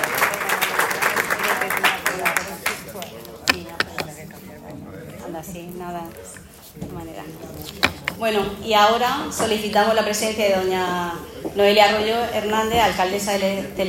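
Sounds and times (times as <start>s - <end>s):
audience applause: 0.0s - 2.8s
speech: 8.2s - 13.8s.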